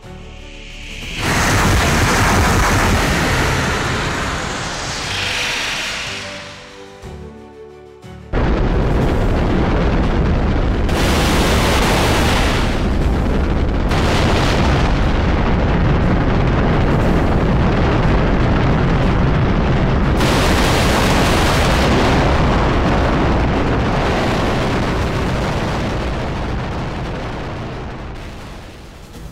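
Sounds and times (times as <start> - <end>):
multiple missile launches: 0.0 - 7.0, 8.4 - 29.0.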